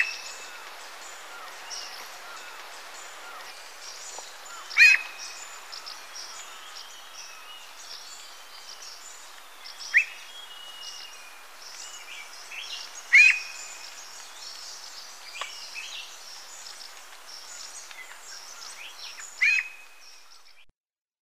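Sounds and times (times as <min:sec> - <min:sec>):
Russet-backed Oropendola calling in Ecuador: 0:00.0 - 0:20.7.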